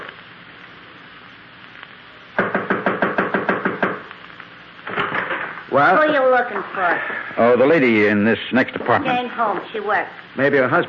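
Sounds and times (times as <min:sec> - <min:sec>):
knocking on an apartment door: 0:02.4 - 0:04.0
speech: 0:05.8 - 0:10.8.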